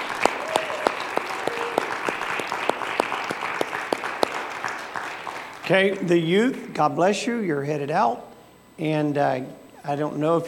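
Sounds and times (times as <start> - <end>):
audience applause: 0.0 - 6.0
speech: 5.7 - 10.4.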